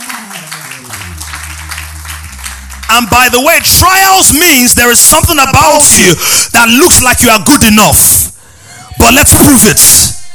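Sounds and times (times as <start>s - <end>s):
audience clapping: 0.0s - 5.4s
speech: 2.9s - 8.3s, 9.0s - 10.2s.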